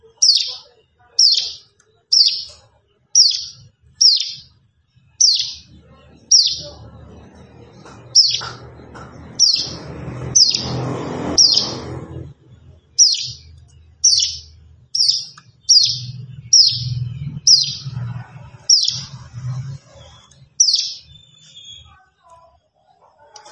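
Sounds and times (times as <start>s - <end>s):
plain prinia chirping: 0.0s - 22.1s
low droning hum: 3.9s - 21.3s.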